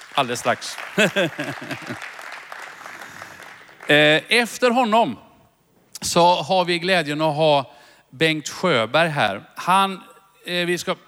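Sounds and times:
audience applause: 0:00.0 - 0:04.0
speech: 0:00.2 - 0:02.2, 0:03.9 - 0:05.2, 0:06.0 - 0:11.0
laughter: 0:00.9 - 0:02.2.

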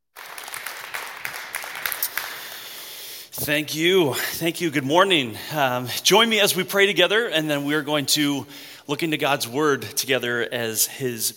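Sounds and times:
audience applause at a Harvest Ottawa church service: 0:00.1 - 0:02.9
speech: 0:03.4 - 0:11.3.

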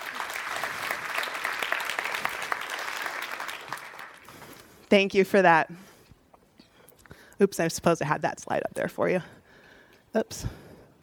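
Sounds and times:
audience applause: 0:00.0 - 0:04.3
speech: 0:04.9 - 0:05.9, 0:07.4 - 0:09.4, 0:10.1 - 0:10.6.

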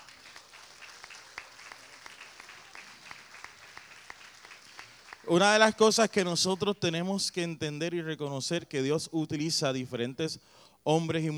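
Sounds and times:
crowd applause: 0:00.0 - 0:06.2
speech: 0:05.3 - 0:11.3.

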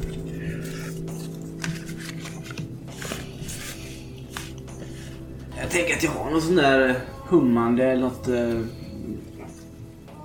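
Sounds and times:
shuffling a deck of tarot cards: 0:00.0 - 0:05.1
speech: 0:05.6 - 0:09.3.

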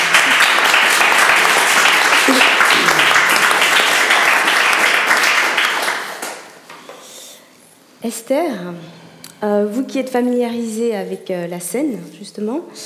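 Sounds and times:
audience applause: 0:00.0 - 0:06.5
speech: 0:08.0 - 0:12.8.

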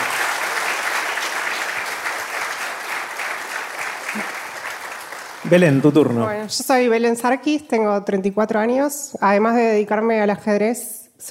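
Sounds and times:
audience applause: 0:00.0 - 0:06.5
speech: 0:05.5 - 0:11.2.

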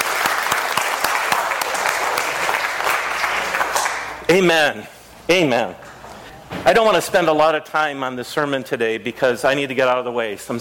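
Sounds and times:
audience applauding: 0:00.0 - 0:04.2
speech: 0:04.3 - 0:05.8, 0:06.7 - 0:10.5.

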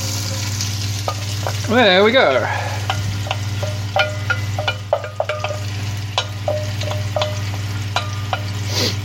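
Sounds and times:
garlic, onion and chili frying in melted ghee: 0:00.0 - 0:09.0
low constant hum: 0:00.0 - 0:09.0
speech: 0:01.7 - 0:02.7.

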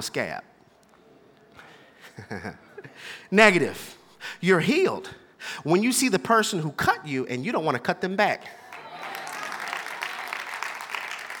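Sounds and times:
speech: 0:00.0 - 0:00.5, 0:02.2 - 0:08.6
light polite golf clap applause: 0:08.6 - 0:11.3.

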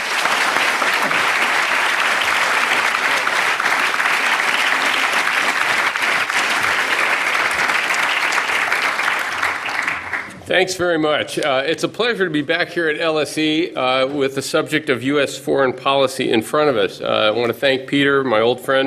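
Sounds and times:
audience applause at LSE welcoming Professor Stephen Walt: 0:00.0 - 0:10.4
speech: 0:10.5 - 0:18.8.

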